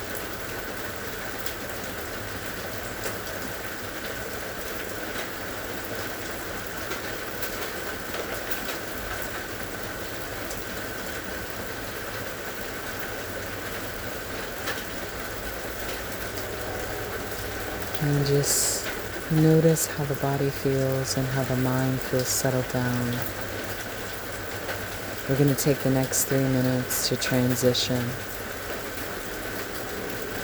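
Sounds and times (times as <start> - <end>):
steady rain pattering on surfaces: 0.0 - 30.4
speech: 18.2 - 18.6, 19.3 - 23.5, 25.3 - 28.3.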